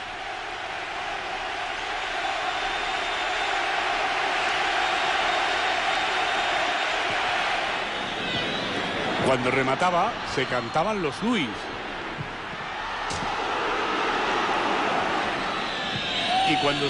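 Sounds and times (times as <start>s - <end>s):
large stadium crowd roaring and applauding: 0.0s - 16.8s
speech: 9.3s - 11.8s, 16.5s - 16.8s.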